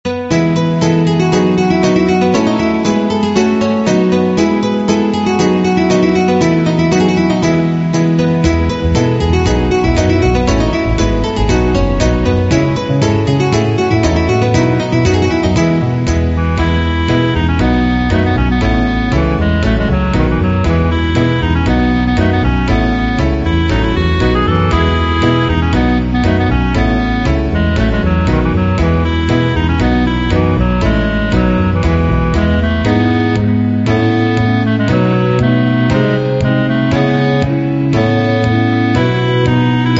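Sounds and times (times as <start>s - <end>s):
background music: 0.0s - 39.9s.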